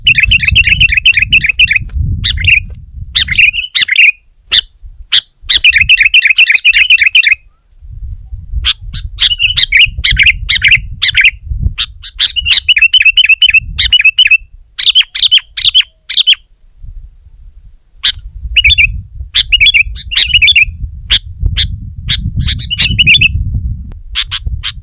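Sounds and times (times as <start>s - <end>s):
sooty-headed bulbul chattering song: 0.0s - 7.5s, 8.6s - 16.5s, 18.0s - 23.4s.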